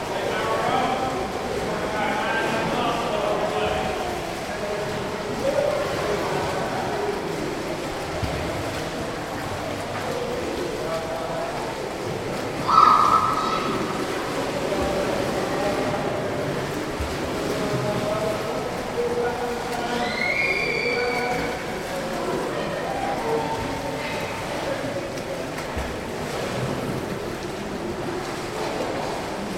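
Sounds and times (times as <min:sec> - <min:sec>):
swimming pool ambience with lessons in background: 0:00.0 - 0:29.5.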